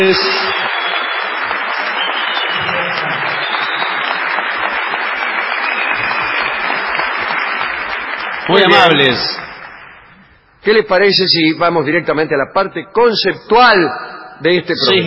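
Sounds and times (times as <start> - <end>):
speech: 0.0 - 0.4, 8.5 - 9.4, 10.6 - 15.0
theatre audience ovation: 0.0 - 10.2.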